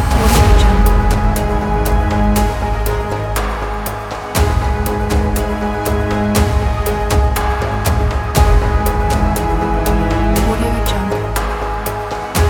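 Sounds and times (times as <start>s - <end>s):
danger cinematic suspense music: 0.0s - 12.4s.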